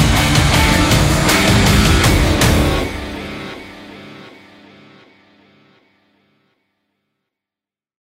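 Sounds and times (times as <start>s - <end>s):
epic rock drums: 0.0s - 4.3s
epic rock guitars: 0.0s - 5.8s.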